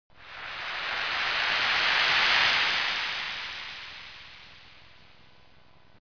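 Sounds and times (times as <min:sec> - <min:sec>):
wave: 0:00.1 - 0:05.6.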